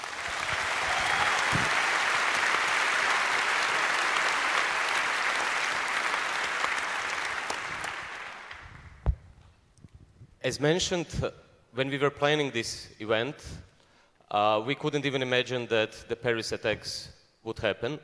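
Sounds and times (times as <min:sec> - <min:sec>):
audience applause: 0:00.0 - 0:08.9
speech: 0:10.4 - 0:13.7, 0:14.3 - 0:18.0.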